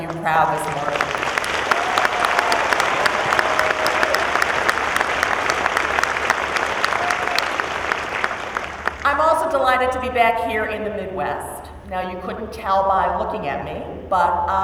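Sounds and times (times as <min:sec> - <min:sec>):
audience applause: 0:00.0 - 0:09.3
speech: 0:00.2 - 0:01.1, 0:09.7 - 0:14.6.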